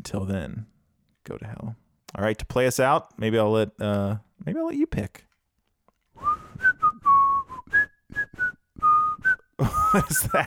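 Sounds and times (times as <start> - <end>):
speech: 0.0 - 5.3, 9.6 - 10.4
person whistling a tune: 6.2 - 10.2
laughter: 9.6 - 10.4.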